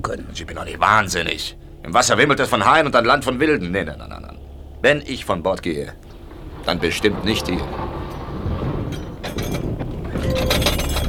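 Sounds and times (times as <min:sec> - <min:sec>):
speech: 0:00.0 - 0:07.8
ship running aground: 0:00.0 - 0:11.0
cracks, clinks and splintering crashes of a ship running aground: 0:06.0 - 0:11.0.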